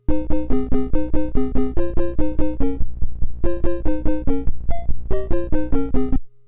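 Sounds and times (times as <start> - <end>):
2-voice music: 0.0 - 6.3.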